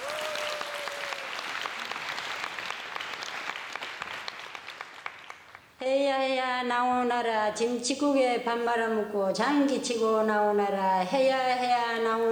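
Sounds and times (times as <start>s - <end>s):
audience applause: 0.0s - 5.7s
speech: 5.8s - 12.3s.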